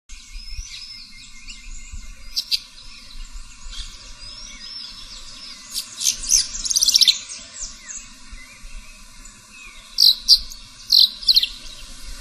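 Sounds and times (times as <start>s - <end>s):
Progne tapera calling: 0.5s - 12.0s.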